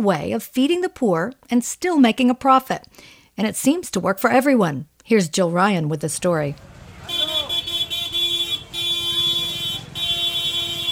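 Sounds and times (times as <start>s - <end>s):
speech: 0.0s - 6.7s
busy Indian market street with rickshaws: 6.6s - 10.9s.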